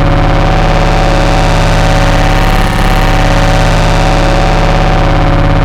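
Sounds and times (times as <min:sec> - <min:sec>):
music loop: 0:00.1 - 0:05.6.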